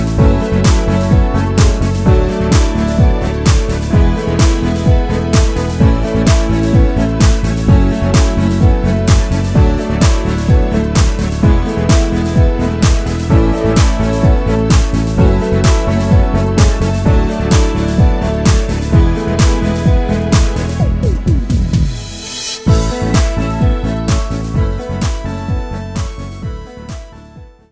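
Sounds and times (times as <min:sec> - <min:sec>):
arranger keyboard demo song: 0:00.0 - 0:27.7.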